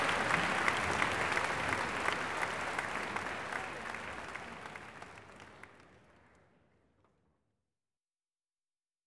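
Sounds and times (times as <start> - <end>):
closing applause after a violin concerto: 0.0 - 6.0.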